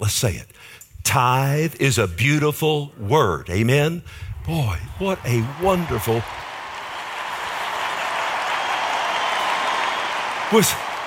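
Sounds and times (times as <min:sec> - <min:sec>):
speech: 0:00.0 - 0:06.4, 0:10.5 - 0:10.9
audience applauding: 0:05.0 - 0:11.0.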